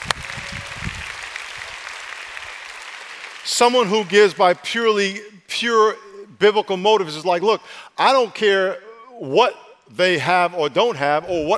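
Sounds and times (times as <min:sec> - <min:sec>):
audience clapping: 0:00.0 - 0:04.7
speech: 0:03.5 - 0:11.5.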